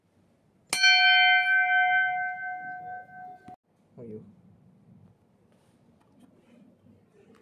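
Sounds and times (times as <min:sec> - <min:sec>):
bell: 0:00.7 - 0:03.6.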